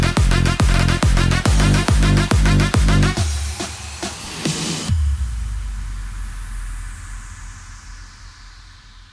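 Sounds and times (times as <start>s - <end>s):
Italian tarantella dance music: 0.0s - 4.9s.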